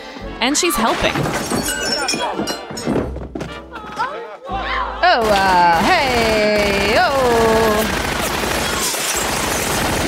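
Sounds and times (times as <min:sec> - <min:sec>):
speech: 0:00.4 - 0:03.0, 0:05.1 - 0:06.6
Tommy gun firing: 0:05.2 - 0:10.0.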